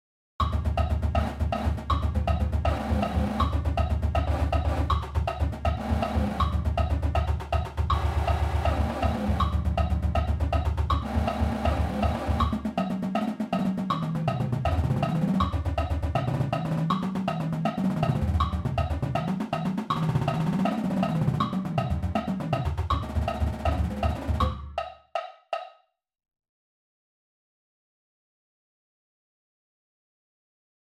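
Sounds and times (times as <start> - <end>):
snare drum triplet roll exercise: 0.4 - 24.6.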